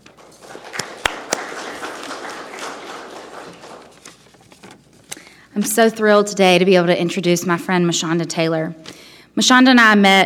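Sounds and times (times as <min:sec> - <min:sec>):
audience applauding: 0:00.0 - 0:04.4
speech: 0:05.6 - 0:10.2.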